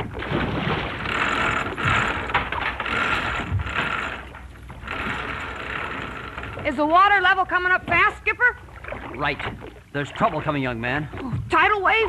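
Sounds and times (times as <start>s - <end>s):
ship's heavy anchor chain running out through a winch: 0.7s - 8.3s
speech: 6.7s - 12.0s.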